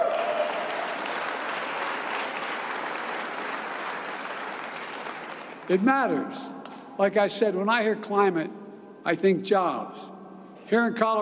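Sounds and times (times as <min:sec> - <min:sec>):
audience applause: 0:00.0 - 0:05.7
speech: 0:05.7 - 0:11.2.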